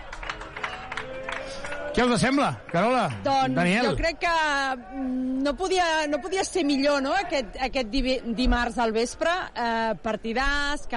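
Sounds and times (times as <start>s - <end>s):
crowd ovation for the captain: 0.0s - 4.0s
speech: 2.0s - 10.9s.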